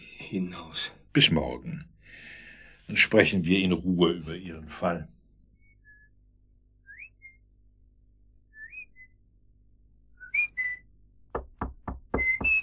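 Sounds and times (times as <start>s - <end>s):
speech: 0.3s - 5.2s
person whistling a few short rising notes: 6.9s - 7.4s, 8.6s - 9.1s, 10.2s - 10.9s, 12.1s - 12.6s
firm knocks on a door: 11.3s - 12.6s.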